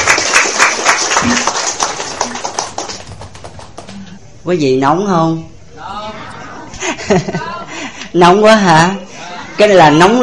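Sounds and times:
audience applause: 0.0 - 4.1
speech: 4.5 - 5.5, 7.1 - 7.5, 8.1 - 9.0, 9.6 - 10.2
laughter: 6.0 - 8.1.

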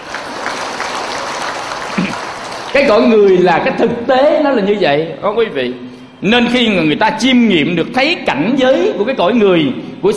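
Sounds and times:
audience applause during a spoken talk: 0.0 - 3.4
speech: 2.8 - 10.1.

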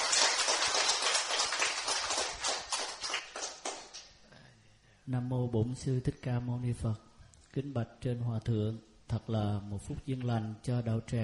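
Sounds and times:
audience applause: 0.0 - 4.0
speech: 5.1 - 11.2.

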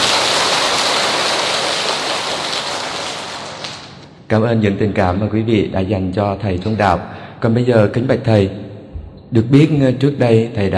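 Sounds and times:
large crowd applause: 0.0 - 4.0
speech: 4.3 - 8.6, 9.3 - 10.7.

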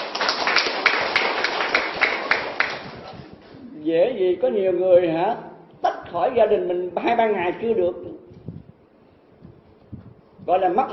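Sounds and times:
audience applause: 0.0 - 3.0
speech: 3.9 - 5.5, 6.1 - 8.2, 10.5 - 10.9.

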